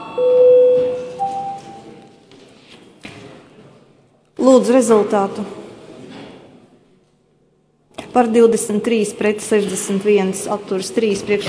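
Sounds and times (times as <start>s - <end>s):
parliament voting bell electronic tone: 0.0s - 2.0s
low murmur: 0.0s - 11.4s
speech: 4.4s - 5.6s, 8.2s - 11.4s.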